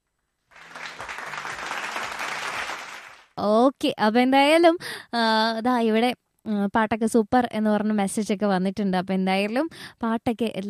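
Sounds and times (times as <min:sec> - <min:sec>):
applause for two singers: 0:00.5 - 0:03.4
speech: 0:03.4 - 0:10.6.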